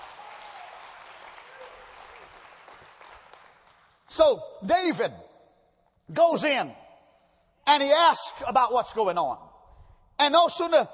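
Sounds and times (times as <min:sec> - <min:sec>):
audience hand clapping: 0:00.0 - 0:04.1
speech: 0:04.2 - 0:05.2, 0:06.1 - 0:06.8, 0:07.7 - 0:09.4, 0:10.2 - 0:10.9.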